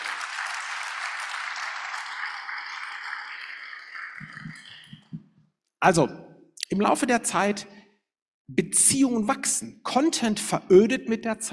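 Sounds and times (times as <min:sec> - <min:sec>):
crowd applauding: 0:00.0 - 0:05.1
speech: 0:05.8 - 0:07.8, 0:08.5 - 0:11.5.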